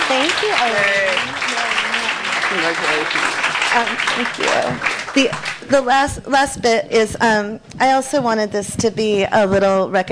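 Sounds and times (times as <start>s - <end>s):
audience applause: 0.0s - 5.7s
speech: 0.1s - 1.5s, 2.5s - 10.1s.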